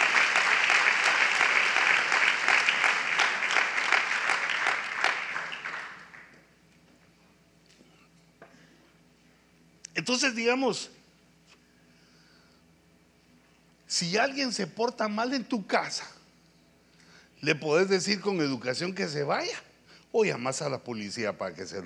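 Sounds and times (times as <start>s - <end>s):
audience applause: 0.0s - 6.4s
speech: 10.1s - 11.0s, 14.0s - 16.2s, 17.4s - 21.8s.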